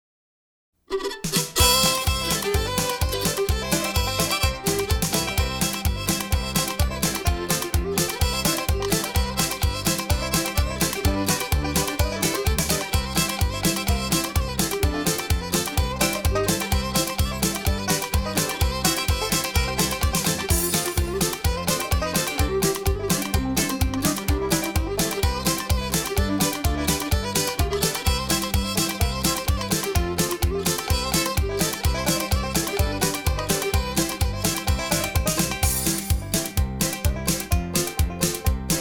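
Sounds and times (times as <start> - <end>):
hoedown square dance music: 0.9 - 38.7.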